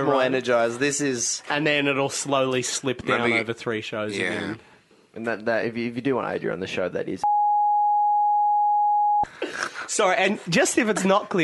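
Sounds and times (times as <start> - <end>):
speech: 0.0 - 7.2, 9.9 - 11.4
censor bleep tone: 7.2 - 9.3.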